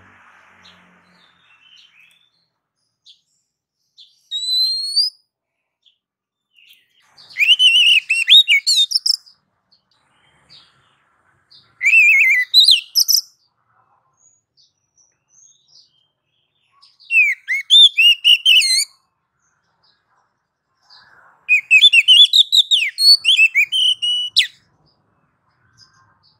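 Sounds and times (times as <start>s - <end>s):
female oriental magpie-robin calling to a male: 4.0s - 5.2s, 7.3s - 9.3s, 11.8s - 13.4s, 17.0s - 19.0s, 21.5s - 24.6s.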